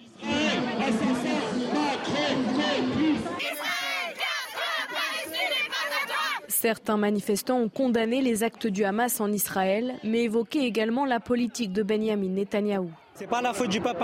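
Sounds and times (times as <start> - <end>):
protest crowd chanting slogans: 0.0 - 6.6
speech: 6.6 - 14.0.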